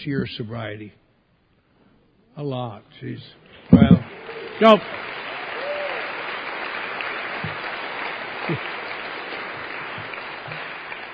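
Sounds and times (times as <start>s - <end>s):
speech: 0.0s - 1.0s, 2.4s - 5.1s, 8.5s - 8.7s
audience clapping: 3.6s - 11.1s.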